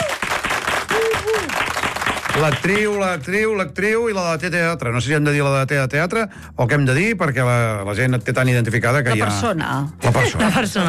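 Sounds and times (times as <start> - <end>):
whoops and cheers: 0.0 - 1.8
crowd applauding a guest: 0.0 - 3.2
speech: 2.4 - 10.8.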